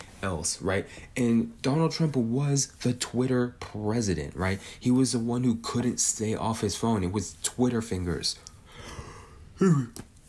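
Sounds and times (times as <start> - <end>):
speech: 0.2 - 8.5, 9.6 - 10.1
person yawning: 8.9 - 10.0.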